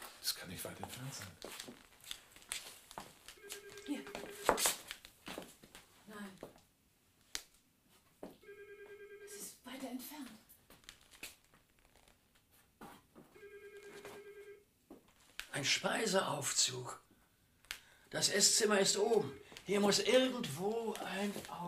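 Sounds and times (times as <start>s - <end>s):
speech: 0.3s - 2.0s, 15.6s - 17.0s, 18.1s - 21.6s
muffled telephone ringing: 3.4s - 4.6s, 8.4s - 9.6s, 13.3s - 14.7s, 18.8s - 20.0s.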